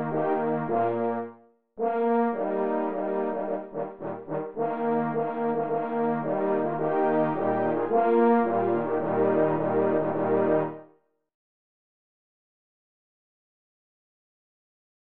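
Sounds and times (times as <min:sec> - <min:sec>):
march music: 0:00.0 - 0:10.8.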